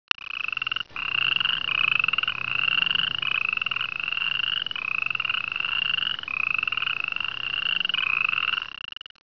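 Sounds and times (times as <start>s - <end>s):
frog: 0.1s - 9.2s.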